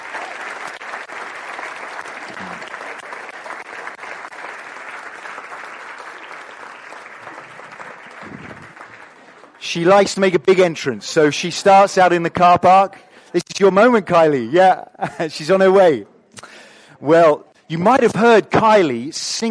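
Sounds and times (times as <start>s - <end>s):
audience applause: 0.0s - 10.6s
speech: 9.6s - 16.1s, 17.0s - 19.4s.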